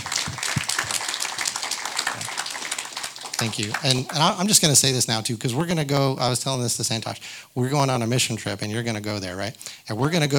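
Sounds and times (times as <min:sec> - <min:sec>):
crowd applause: 0:00.0 - 0:04.8
speech: 0:03.4 - 0:10.3.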